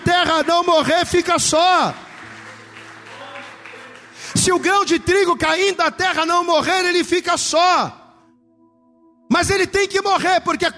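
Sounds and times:
audience applauding: 0.0s - 5.2s
speech: 0.2s - 2.1s, 4.4s - 8.0s, 9.3s - 10.7s.

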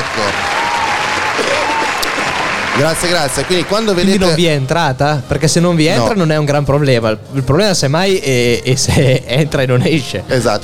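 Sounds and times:
applause: 0.0s - 4.4s
speech: 2.8s - 10.6s
laughter: 8.8s - 9.5s.

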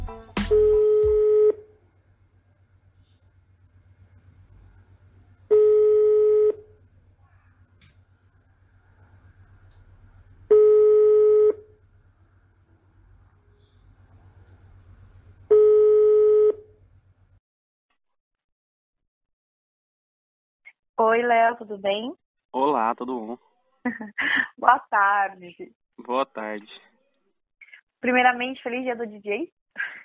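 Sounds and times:
telephone ringback tones: 0.5s - 1.6s, 5.5s - 6.7s, 10.5s - 11.7s, 15.5s - 16.7s
speech: 21.1s - 26.9s, 28.0s - 30.0s
laughter: 23.9s - 24.6s.

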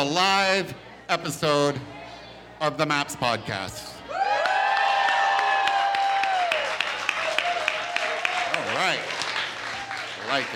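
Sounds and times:
speech: 0.0s - 2.0s, 2.6s - 4.2s, 10.3s - 10.5s
audience whoops and shouts: 4.1s - 6.7s
live festival audience clapping: 4.4s - 10.5s.

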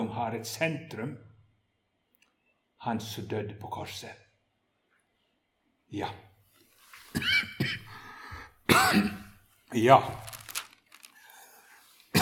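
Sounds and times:
speech: 0.2s - 1.3s, 2.8s - 4.2s, 5.9s - 6.3s, 8.8s - 10.3s
person coughing after swallowing the wrong way: 7.2s - 8.0s, 8.6s - 9.4s.

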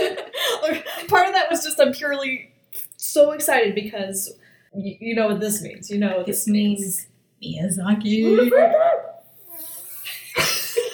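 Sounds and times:
speech: 1.1s - 9.1s
person exclaiming: 8.2s - 9.8s.

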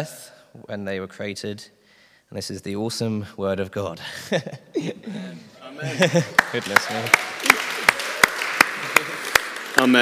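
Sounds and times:
speech: 0.0s - 7.3s, 9.8s - 10.0s
laughter: 4.0s - 9.4s
audience applause: 6.0s - 10.0s
sharp loud claps: 6.3s - 10.0s.

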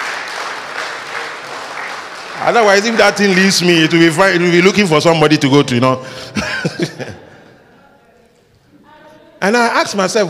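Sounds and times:
audience clapping: 0.0s - 4.9s
speech: 2.4s - 7.2s, 9.4s - 10.2s
laughter: 6.0s - 7.8s.

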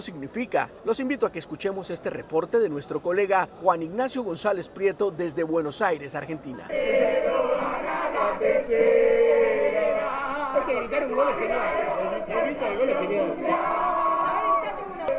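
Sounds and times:
speech: 0.0s - 9.3s, 10.7s - 13.9s
street crowd celebrating football championship, shouting and chanting: 6.7s - 15.1s.

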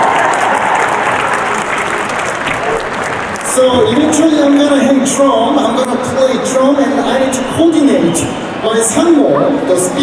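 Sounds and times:
people clapping: 0.0s - 5.3s
speech: 3.6s - 10.0s.

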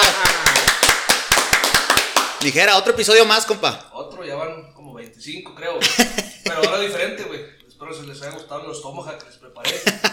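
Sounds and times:
laughter: 0.0s - 0.7s, 5.8s - 7.0s, 9.6s - 10.1s
applause, hands clapping: 0.0s - 3.2s
speech: 2.4s - 10.1s.

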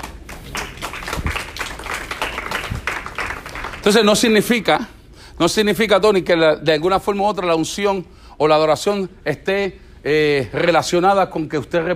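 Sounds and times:
audience clapping applause: 0.0s - 4.6s
speech: 3.8s - 11.9s.

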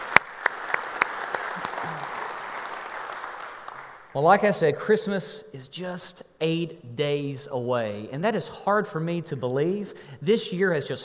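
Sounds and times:
church congregation hand claps: 0.0s - 4.2s
speech: 4.2s - 11.0s.

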